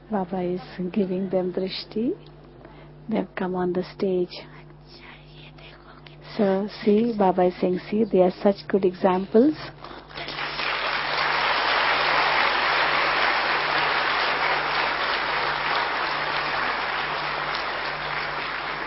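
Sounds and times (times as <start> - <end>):
speech: 0.1 - 2.4, 3.1 - 5.1, 6.4 - 9.8
audience clapping: 10.1 - 18.8.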